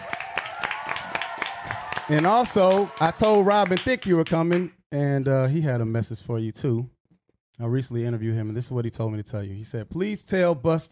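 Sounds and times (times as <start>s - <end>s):
audience applause: 0.0s - 4.1s
speech: 2.1s - 7.0s, 7.6s - 10.8s.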